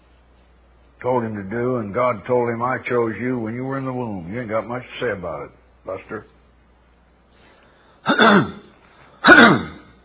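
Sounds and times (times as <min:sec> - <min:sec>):
speech: 0:01.0 - 0:06.4, 0:08.1 - 0:08.6
throat clearing during a Bible sermon: 0:08.0 - 0:09.9.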